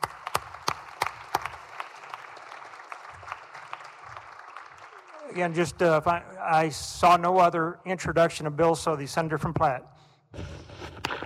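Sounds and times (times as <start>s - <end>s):
applause in a Senate chamber welcoming visiting students: 0.0s - 6.2s
speech: 5.4s - 10.5s.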